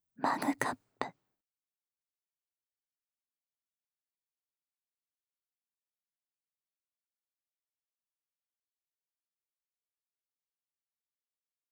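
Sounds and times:
mug ASMR sounds: 0.2s - 0.8s.

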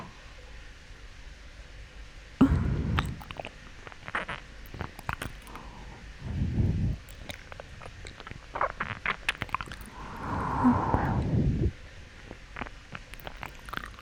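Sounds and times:
ear licking in a bathroom: 2.4s - 11.4s, 12.2s - 13.9s.

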